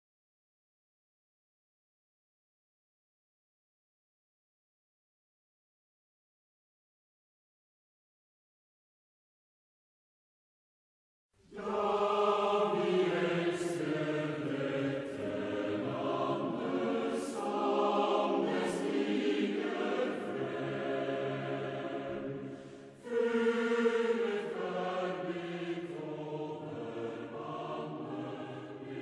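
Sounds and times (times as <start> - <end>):
national anthem: 11.4 - 29.0.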